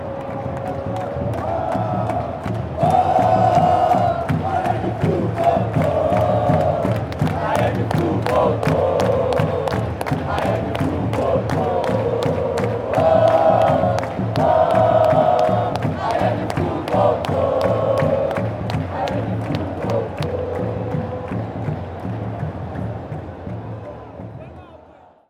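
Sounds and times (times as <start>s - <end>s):
fans chanting: 0.0s - 25.2s.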